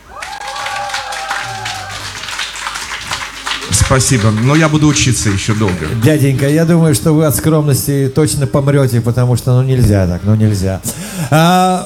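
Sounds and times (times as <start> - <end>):
crowd applause: 0.0 - 6.8
speech: 3.8 - 11.8.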